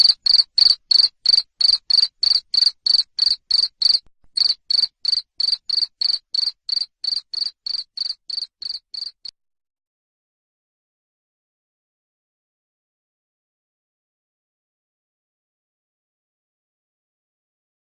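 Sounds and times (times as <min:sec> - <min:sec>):
cricket chirping: 0:00.0 - 0:09.3.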